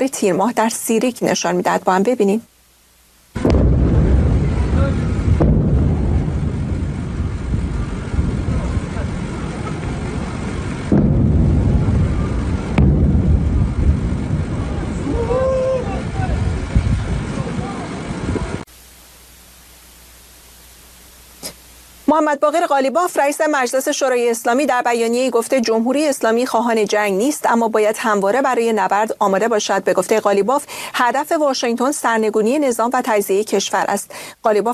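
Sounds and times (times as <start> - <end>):
speech: 0.0 - 2.5, 22.1 - 34.7
explosions at night in Sirik: 3.4 - 18.6.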